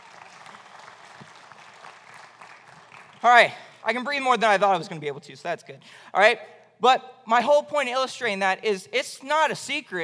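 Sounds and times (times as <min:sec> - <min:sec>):
audience applause: 0:00.0 - 0:03.5
speech: 0:03.2 - 0:10.0.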